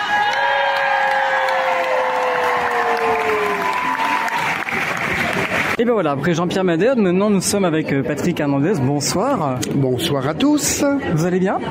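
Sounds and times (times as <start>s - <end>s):
audience applause: 0.0s - 5.8s
speech: 5.8s - 11.6s.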